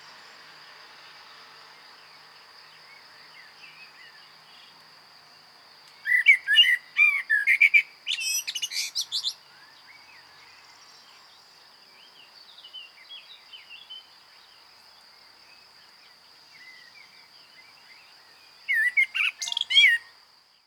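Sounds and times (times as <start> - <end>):
common blackbird singing: 6.0 - 10.5, 18.7 - 20.1.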